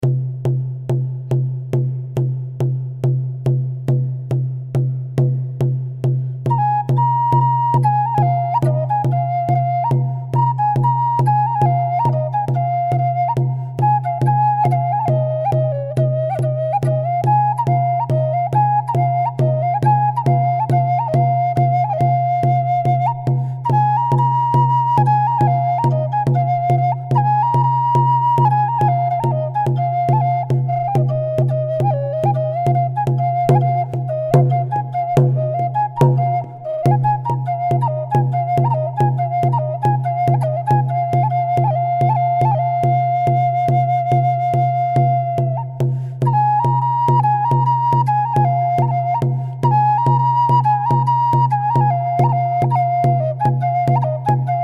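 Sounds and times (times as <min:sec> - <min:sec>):
percussion: 0:00.0 - 0:54.6
North American flute: 0:06.4 - 0:54.6.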